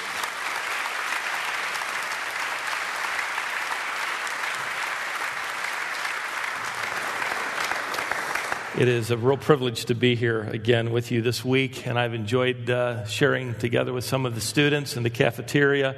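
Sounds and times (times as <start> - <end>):
chapel audience applause welcoming a speaker: 0.0 - 9.2
speech: 8.8 - 15.9.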